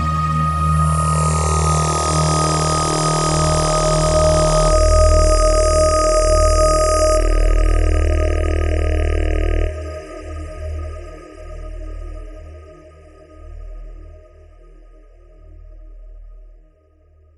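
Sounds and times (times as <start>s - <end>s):
synth theme music: 0.0s - 10.8s.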